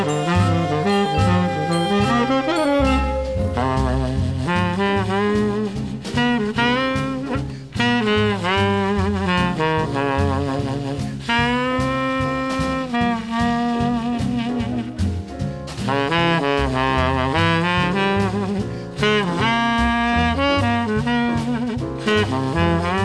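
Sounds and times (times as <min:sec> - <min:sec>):
jazz music: 0:00.0 - 0:23.0.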